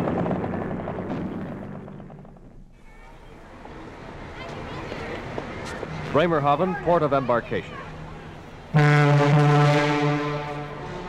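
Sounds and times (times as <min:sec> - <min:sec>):
speech: 0:06.1 - 0:07.8
troop ship's horn: 0:08.6 - 0:11.0
welcoming army brass band: 0:08.7 - 0:11.0.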